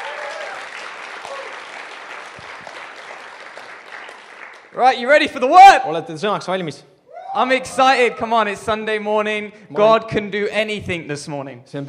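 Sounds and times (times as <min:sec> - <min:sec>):
audience applause: 0:00.0 - 0:04.8
speech: 0:04.8 - 0:11.8.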